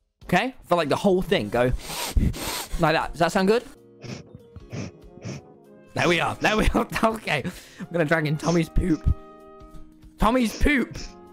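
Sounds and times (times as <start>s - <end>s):
speech: 0.3s - 4.2s, 6.0s - 9.2s, 10.2s - 11.2s
sniffing into the microphone: 1.7s - 2.9s, 4.0s - 5.5s.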